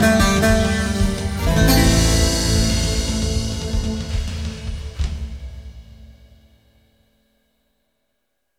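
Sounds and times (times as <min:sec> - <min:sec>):
Greek bouzouki playing: 0:00.0 - 0:05.4.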